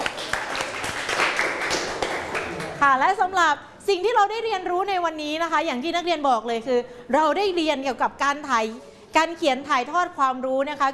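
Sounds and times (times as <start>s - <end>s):
classroom applause for a student group: 0.0s - 2.8s
speech: 2.8s - 10.9s.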